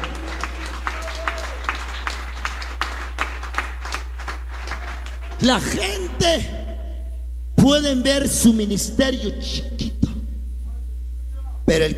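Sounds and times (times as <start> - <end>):
audience clapping in a steady even rhythm: 0.0 - 6.1
low constant hum: 0.0 - 11.9
speech: 5.4 - 6.6, 7.6 - 9.8, 11.7 - 11.9.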